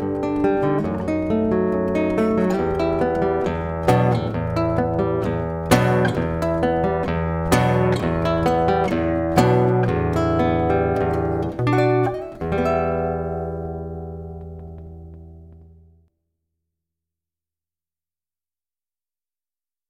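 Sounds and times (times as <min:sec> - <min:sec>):
Colombian aire folk song: 0:00.0 - 0:15.8.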